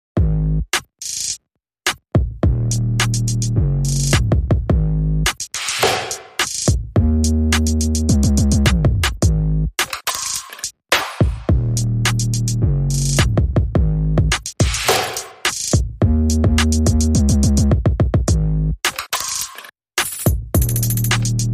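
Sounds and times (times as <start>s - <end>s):
bass: 0.2s - 0.9s, 2.2s - 5.4s, 6.7s - 9.8s, 11.3s - 14.8s, 15.8s - 18.9s, 20.2s - 21.5s
drums: 0.2s - 21.5s.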